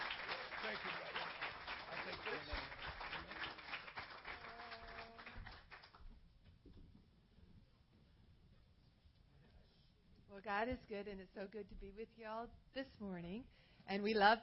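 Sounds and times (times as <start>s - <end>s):
audience applause: 0.0s - 6.0s
speech: 10.4s - 14.4s.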